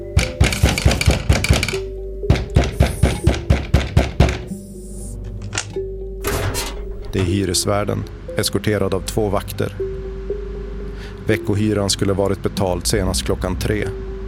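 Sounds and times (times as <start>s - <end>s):
knocking on the door of a rented room: 0.2s - 4.5s
speech: 7.1s - 9.9s, 11.3s - 14.0s.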